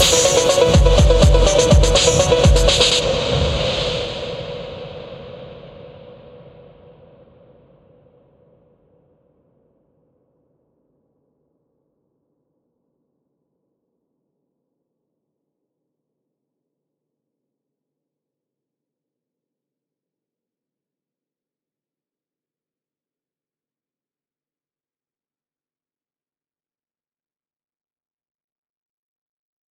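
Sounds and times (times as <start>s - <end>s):
funk music: 0.0s - 4.4s.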